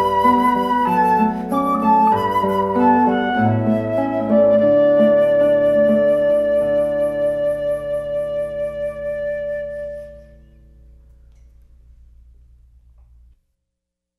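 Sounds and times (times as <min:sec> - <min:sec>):
flute: 0:00.0 - 0:10.6.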